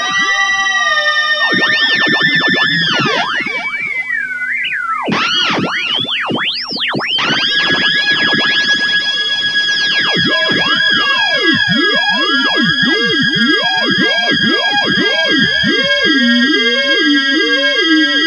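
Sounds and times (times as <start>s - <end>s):
theremin with delay: 0.0s - 18.2s.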